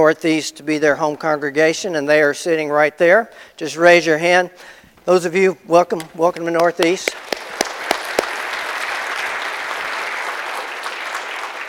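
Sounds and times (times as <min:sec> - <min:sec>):
speech: 0:00.0 - 0:07.3
church audience standing ovation for new congregation members: 0:07.0 - 0:11.6.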